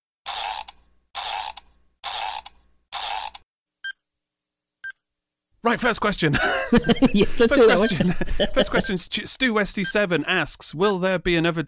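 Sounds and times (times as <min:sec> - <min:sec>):
wind-up timer being cranked: 0:00.2 - 0:03.4
speech: 0:05.6 - 0:11.6
laughter: 0:06.3 - 0:09.1.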